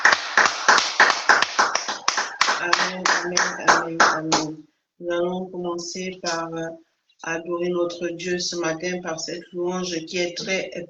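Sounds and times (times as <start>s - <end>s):
church congregation clapping while acclaiming God: 0.0s - 4.6s
speech: 2.6s - 10.8s.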